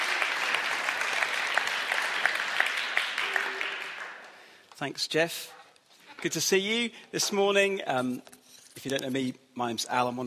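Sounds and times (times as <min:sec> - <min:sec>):
church congregation applauding a speaker: 0:00.0 - 0:04.6
speech: 0:04.8 - 0:05.6, 0:06.2 - 0:10.2.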